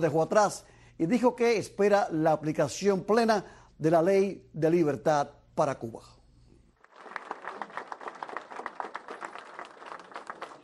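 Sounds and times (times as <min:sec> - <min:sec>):
speech: 0:00.0 - 0:06.2
audience clapping for Senator Scott at an event in West Miami: 0:06.8 - 0:10.6.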